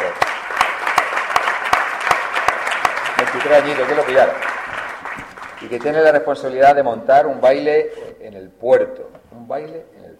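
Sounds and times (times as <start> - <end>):
crowd applauding: 0.0 - 6.5
speech: 3.3 - 4.5, 5.6 - 10.1.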